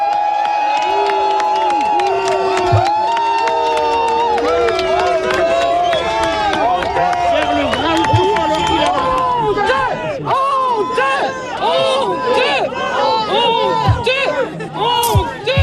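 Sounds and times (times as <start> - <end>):
residents of Le Porge shouting to greet a visiting minister: 0.0 - 15.6.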